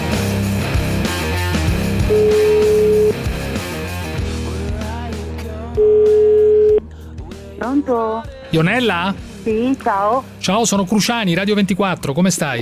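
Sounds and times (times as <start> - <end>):
music: 0.0 - 12.6
telephone ringback tone of an outgoing call to Switzerland: 2.1 - 3.2, 5.8 - 6.8
speech: 7.9 - 12.6.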